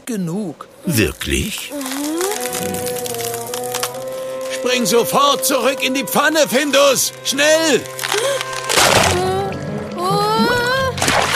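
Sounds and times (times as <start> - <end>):
speech: 0.1 - 3.2, 4.6 - 8.5
ice cracking and breaking into water: 1.3 - 4.6, 6.5 - 9.7, 11.0 - 11.3
water splashing: 7.8 - 11.3.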